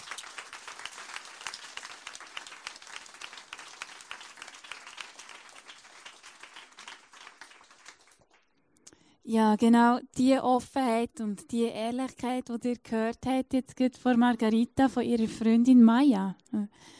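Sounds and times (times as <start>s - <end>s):
audience applause: 0.0s - 8.4s
speech: 9.3s - 16.9s.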